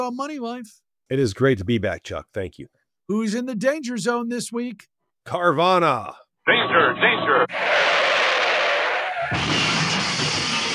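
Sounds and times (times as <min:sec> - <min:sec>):
speech: 0:00.0 - 0:08.0
crashing skidding car sound effect: 0:07.5 - 0:10.7.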